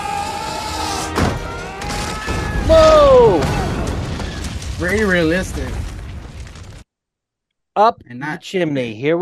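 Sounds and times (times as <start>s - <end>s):
movie explosion: 1.2s - 6.8s
speech: 2.7s - 3.6s, 4.8s - 5.8s, 7.8s - 9.2s.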